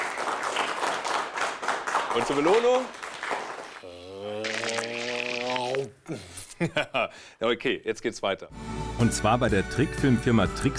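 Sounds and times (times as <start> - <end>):
group applauding: 0.0 - 5.8
speech: 2.1 - 4.0, 6.1 - 10.7.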